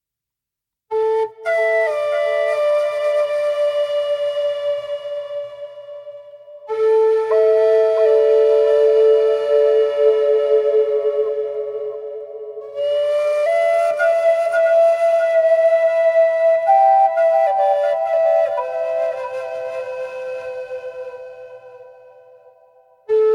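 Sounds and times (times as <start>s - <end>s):
flutes: 0.9s - 23.3s.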